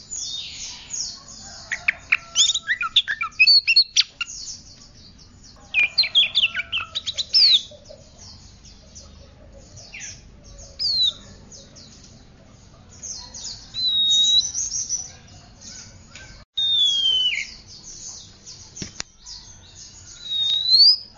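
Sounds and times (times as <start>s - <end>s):
Oriental magpie-robin whistling: 1.8s - 4.3s, 5.8s - 7.7s, 10.8s - 11.2s, 13.5s - 15.1s, 15.8s - 17.6s, 20.2s - 21.1s.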